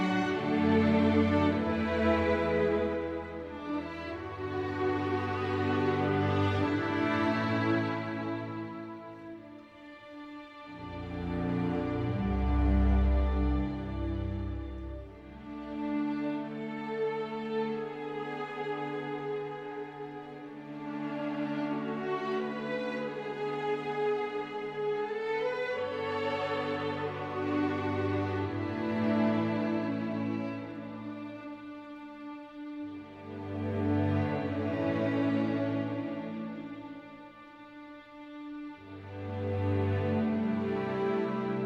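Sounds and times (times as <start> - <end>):
aspirational olden-days drama music: 0.0 - 41.6.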